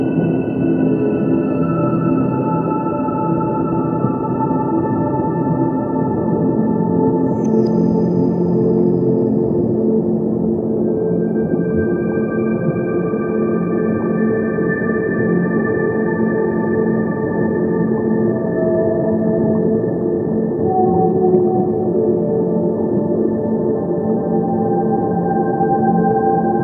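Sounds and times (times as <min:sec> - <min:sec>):
whale song: 0:00.0 - 0:26.6.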